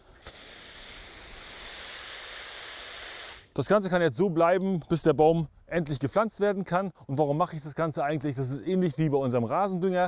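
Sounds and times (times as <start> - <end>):
watering the ground with spraying water: 0.2 - 3.5
speech: 3.6 - 10.0.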